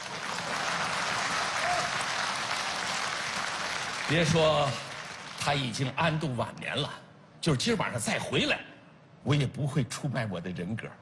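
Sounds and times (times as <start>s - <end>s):
audience applause: 0.0s - 5.8s
speech: 4.1s - 10.9s.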